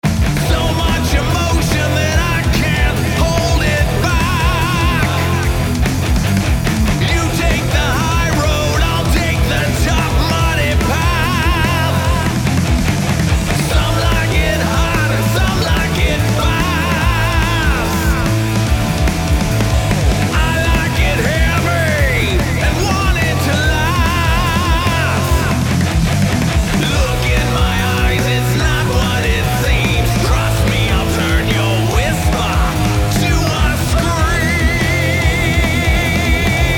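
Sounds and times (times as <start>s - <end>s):
hard rock music: 0.0s - 36.7s.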